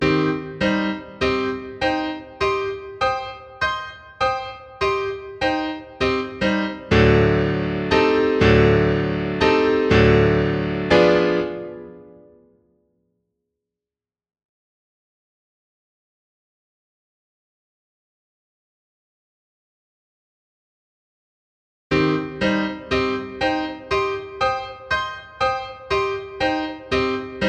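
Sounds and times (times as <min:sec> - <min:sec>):
piano: 0:00.0 - 0:13.2, 0:21.9 - 0:27.4.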